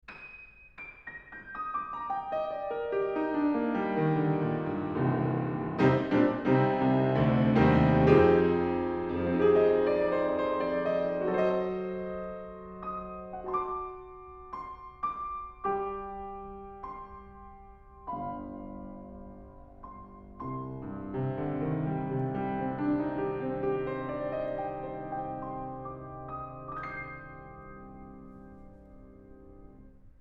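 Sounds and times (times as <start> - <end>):
piano: 0.0 - 30.2.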